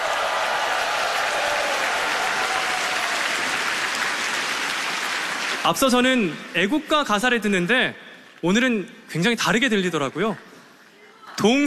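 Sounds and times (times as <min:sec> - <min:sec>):
large audience applause: 0:00.0 - 0:06.2
speech: 0:05.6 - 0:10.5, 0:11.4 - 0:11.6.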